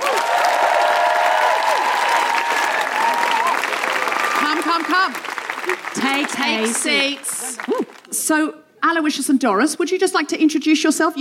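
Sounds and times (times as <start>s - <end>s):
audience applause welcoming two guests: 0.0s - 8.1s
speech: 4.8s - 11.2s.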